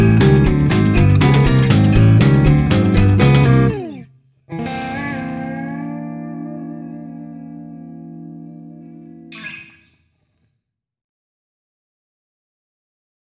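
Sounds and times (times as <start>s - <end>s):
two-step country music: 0.0s - 9.6s.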